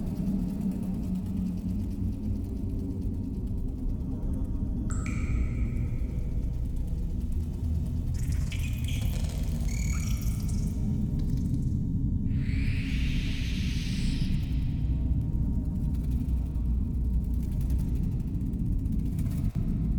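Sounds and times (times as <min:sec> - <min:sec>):
spiders cave ambience: 0:00.1 - 0:19.9.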